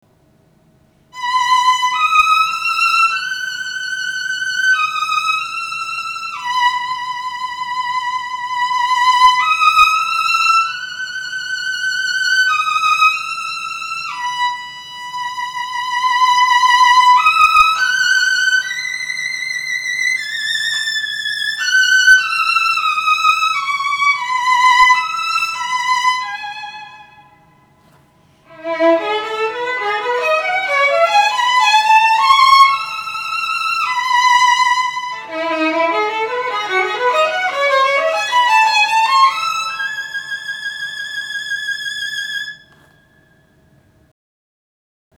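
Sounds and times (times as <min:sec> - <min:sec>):
violins: 0:01.1 - 0:43.2.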